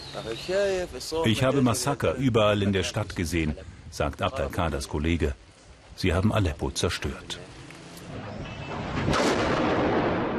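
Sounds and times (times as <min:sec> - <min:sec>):
speech: 0:00.2 - 0:05.4, 0:06.0 - 0:08.3
heavy blasts from bombing: 0:08.1 - 0:10.3
gunfire in a war zone: 0:08.2 - 0:10.3.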